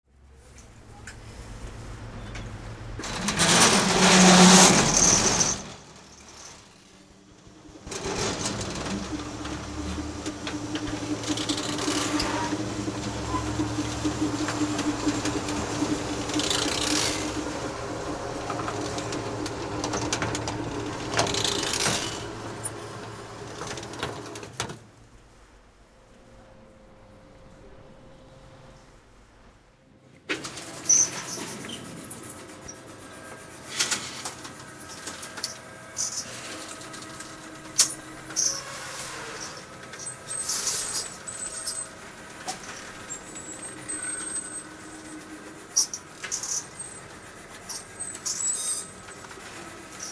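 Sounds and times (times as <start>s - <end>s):
shutters: 2.2s - 6.7s, 7.4s - 24.8s, 30.3s - 50.0s.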